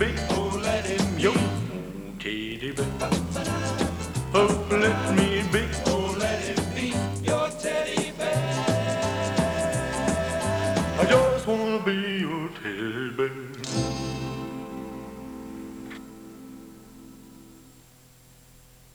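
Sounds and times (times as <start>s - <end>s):
teddy bear toy singing: 0.0s - 14.2s.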